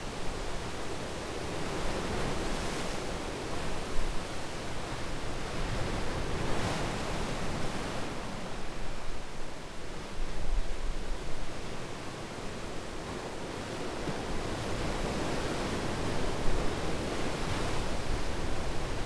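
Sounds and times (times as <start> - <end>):
ocean: 0.0 - 19.0.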